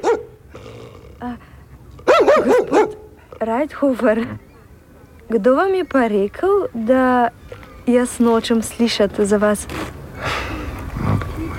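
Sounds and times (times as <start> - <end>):
dog barking: 0.0 - 0.4, 2.0 - 3.2
dog growling low: 0.0 - 3.6
speech: 1.2 - 1.6, 2.4 - 4.5, 5.3 - 10.0.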